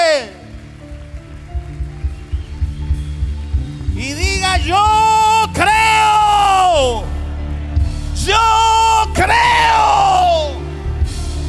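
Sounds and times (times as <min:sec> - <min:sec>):
audience applause: 0:00.0 - 0:11.4.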